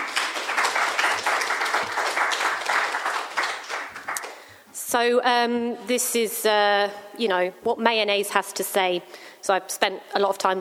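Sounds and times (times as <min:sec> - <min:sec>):
audience applause: 0:00.0 - 0:04.5
speech: 0:04.9 - 0:10.5.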